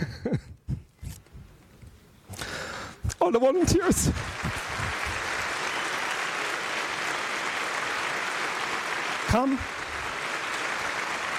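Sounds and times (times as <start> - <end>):
speech: 3.2 - 4.6, 9.4 - 9.8
crowd clapping: 3.6 - 11.3.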